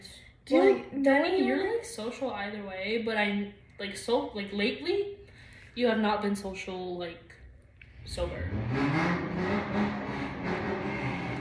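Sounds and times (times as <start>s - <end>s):
speech: 0.5s - 5.2s, 5.8s - 7.4s, 8.0s - 9.8s
car engine revving outside: 8.0s - 11.4s.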